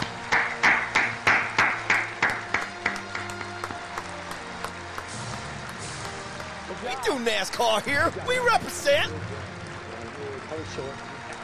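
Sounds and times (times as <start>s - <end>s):
hand clapping at a hall of fame induction: 0.0s - 7.2s, 9.6s - 11.4s
speech: 7.1s - 9.4s, 10.5s - 11.1s.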